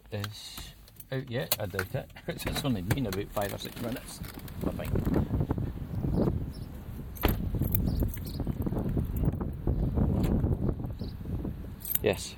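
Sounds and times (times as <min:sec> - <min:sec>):
speech: 0:00.1 - 0:05.2, 0:12.0 - 0:12.3
strong outdoor wind roaring: 0:04.0 - 0:12.2.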